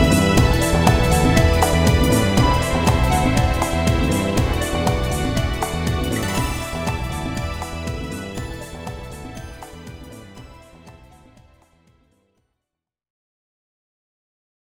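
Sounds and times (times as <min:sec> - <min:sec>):
battle victory music: 0:00.0 - 0:11.3.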